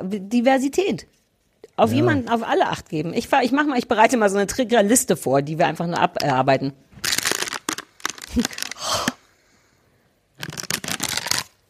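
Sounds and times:
speech: 0:00.0 - 0:01.2, 0:01.8 - 0:07.1, 0:08.4 - 0:08.6
paper rustling and crumpling: 0:07.0 - 0:08.8, 0:10.4 - 0:11.5.

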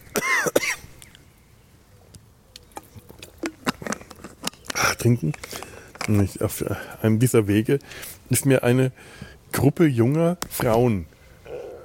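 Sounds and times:
person coughing after choking while talking: 0:00.1 - 0:00.8
speech: 0:05.0 - 0:11.1.

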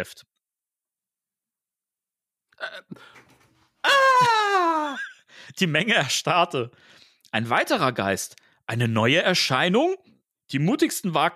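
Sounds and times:
speech: 0:00.0 - 0:00.3, 0:02.6 - 0:03.2, 0:03.9 - 0:11.3
man weeping bitterly: 0:02.6 - 0:03.1, 0:03.8 - 0:05.3.

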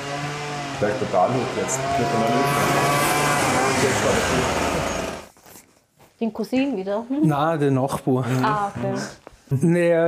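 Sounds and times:
lawn string trimmer running: 0:00.0 - 0:05.3
speech: 0:00.8 - 0:03.2, 0:03.8 - 0:04.8, 0:06.2 - 0:10.0.

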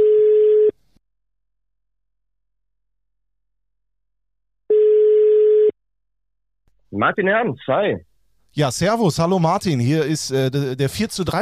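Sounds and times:
telephone ringback tone while a call is being placed: 0:00.0 - 0:00.7, 0:04.7 - 0:05.7
speech: 0:07.0 - 0:11.3.

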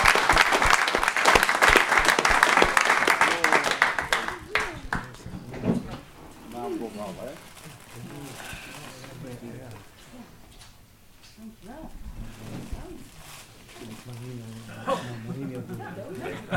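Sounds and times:
audience applause: 0:00.0 - 0:05.3
laughter: 0:14.7 - 0:16.5.

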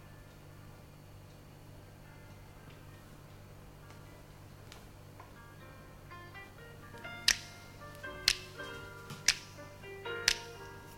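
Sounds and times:
finger snapping in a song: 0:07.3 - 0:08.6, 0:09.2 - 0:09.6, 0:10.3 - 0:10.7.

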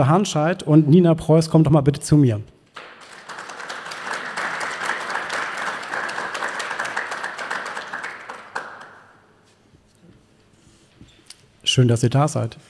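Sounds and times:
speech: 0:00.0 - 0:02.6, 0:11.8 - 0:12.6
audience applause: 0:02.8 - 0:09.2.

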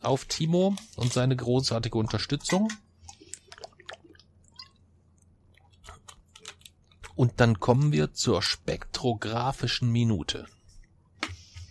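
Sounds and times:
speech: 0:00.0 - 0:02.9, 0:07.2 - 0:10.6
slurping and swallowing a sip of malt beer: 0:03.0 - 0:04.8, 0:05.5 - 0:07.2.

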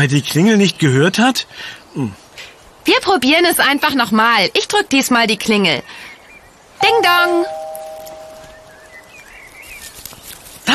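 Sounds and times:
speech: 0:00.0 - 0:02.2, 0:02.8 - 0:06.1, 0:06.8 - 0:07.6
cat rustling through leaves and twigs in bushes: 0:07.1 - 0:10.7
twigs crackling: 0:07.5 - 0:10.7.

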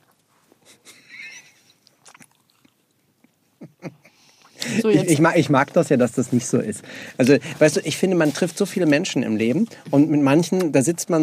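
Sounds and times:
person eating a waffle: 0:01.8 - 0:03.2
speech: 0:04.8 - 0:11.2.

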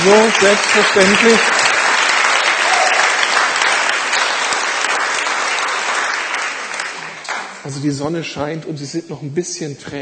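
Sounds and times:
speech: 0:00.0 - 0:01.7, 0:07.7 - 0:10.0
audience applause: 0:00.0 - 0:07.8.

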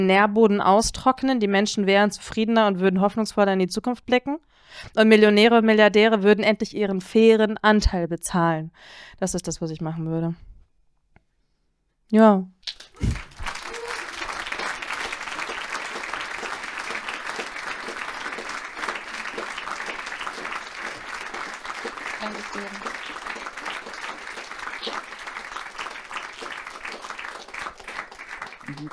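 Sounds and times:
speech: 0:00.0 - 0:10.5, 0:12.1 - 0:13.2
audience applause: 0:12.7 - 0:28.9.

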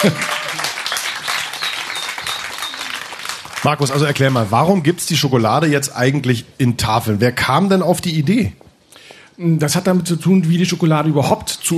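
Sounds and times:
speech: 0:00.0 - 0:00.4, 0:03.6 - 0:08.6, 0:09.4 - 0:11.7
audience applause: 0:00.0 - 0:04.5.

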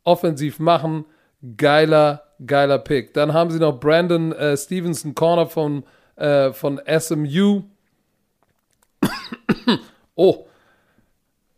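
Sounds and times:
speech: 0:00.0 - 0:07.7, 0:09.0 - 0:10.5
person coughing after choking on something: 0:09.0 - 0:10.0.

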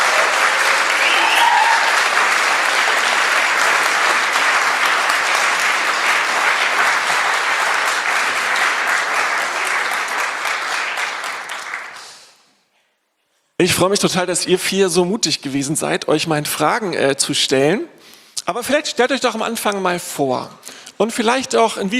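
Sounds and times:
warm audience applause: 0:00.0 - 0:12.2
speech: 0:13.6 - 0:21.9.

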